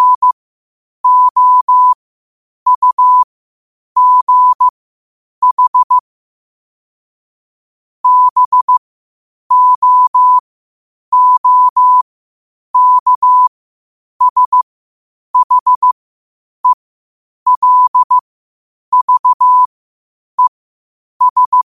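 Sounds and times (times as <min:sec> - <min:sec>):
morse code at 5 wpm: 0:00.0 - 0:00.4, 0:01.0 - 0:02.0, 0:02.7 - 0:03.3, 0:04.0 - 0:04.7, 0:05.4 - 0:06.0, 0:08.0 - 0:08.8, 0:09.5 - 0:10.4, 0:11.1 - 0:12.0, 0:12.8 - 0:13.5, 0:14.2 - 0:14.6, 0:15.4 - 0:16.0, 0:17.5 - 0:18.2, 0:18.9 - 0:19.7, 0:21.2 - 0:21.6.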